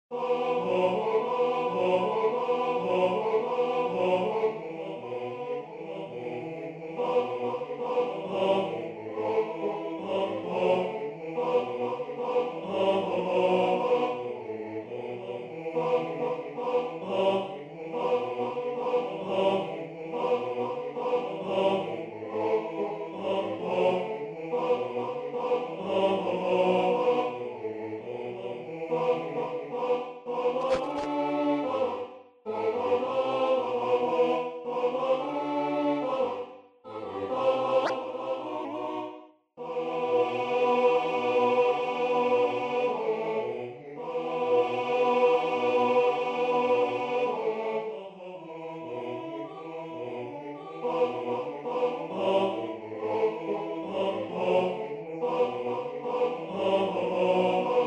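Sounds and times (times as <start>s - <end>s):
tenor singing: 0.2s - 57.8s.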